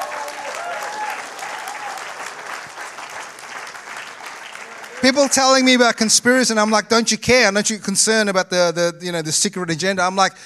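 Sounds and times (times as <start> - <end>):
audience applause: 0.0 - 6.0
speech: 5.0 - 10.4.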